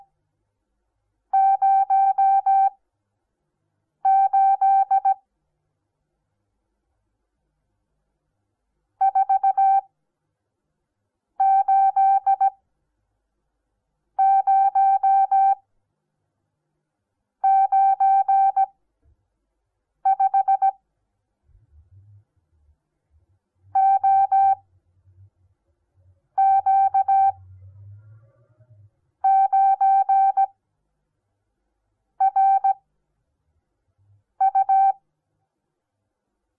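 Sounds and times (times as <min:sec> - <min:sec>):
morse code beeps: 0:01.4 - 0:02.8, 0:04.1 - 0:05.2, 0:09.0 - 0:09.9, 0:11.4 - 0:12.6, 0:14.2 - 0:15.6, 0:17.4 - 0:18.7, 0:20.1 - 0:20.8, 0:23.8 - 0:24.6, 0:26.4 - 0:27.4, 0:29.2 - 0:30.6, 0:32.2 - 0:32.8, 0:34.4 - 0:35.0.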